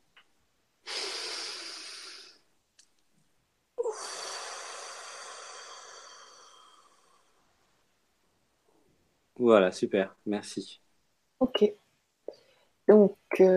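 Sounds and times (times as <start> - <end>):
deep breath: 0.8 - 2.5, 3.8 - 7.6
speech: 9.4 - 10.8, 11.4 - 11.8, 12.9 - 13.5.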